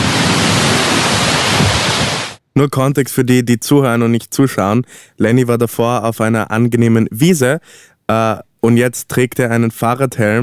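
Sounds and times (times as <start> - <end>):
rushing gorge stream flowing below: 0.0 - 2.4
speech: 2.6 - 10.4.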